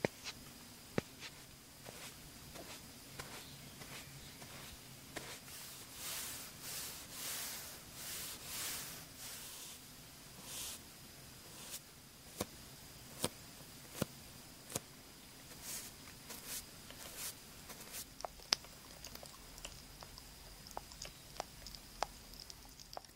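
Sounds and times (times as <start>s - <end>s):
faint steady hum: 0.0s - 23.1s
makeup brush swishes: 1.0s - 9.7s.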